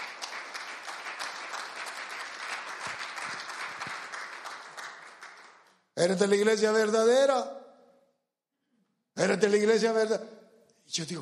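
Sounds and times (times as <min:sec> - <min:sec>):
audience applause: 0:00.0 - 0:05.7
speech: 0:06.0 - 0:07.6, 0:09.2 - 0:10.3, 0:10.9 - 0:11.2.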